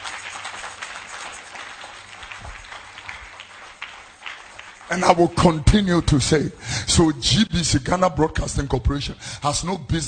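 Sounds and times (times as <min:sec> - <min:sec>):
audience clapping hands: 0:00.0 - 0:06.4
speech: 0:04.9 - 0:10.0.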